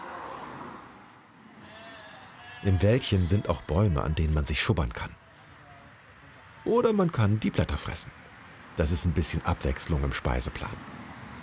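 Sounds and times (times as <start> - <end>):
steady broadband outdoor wash: 0.0 - 11.4
flock of sheep bleating while herded with dogs past a road: 1.5 - 5.9
speech: 2.6 - 5.2, 6.6 - 11.0.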